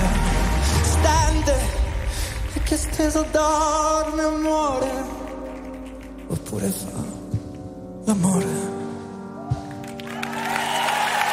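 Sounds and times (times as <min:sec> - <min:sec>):
audience applause after a stage performance: 0:00.0 - 0:07.1, 0:09.6 - 0:11.3
speech: 0:02.7 - 0:05.3, 0:06.5 - 0:07.2, 0:08.1 - 0:08.8.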